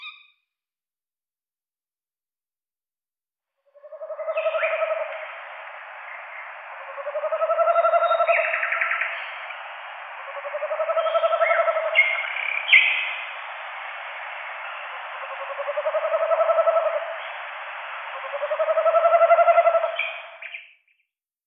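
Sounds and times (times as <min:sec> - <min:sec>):
tawny owl hooting in Luxembourg: 0:03.6 - 0:20.7.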